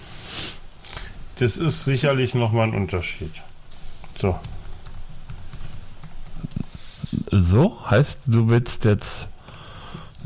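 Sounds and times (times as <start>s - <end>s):
speech: 1.4s - 3.5s, 4.2s - 4.6s, 7.4s - 9.3s
computer keyboard typing a reminder: 4.2s - 6.8s.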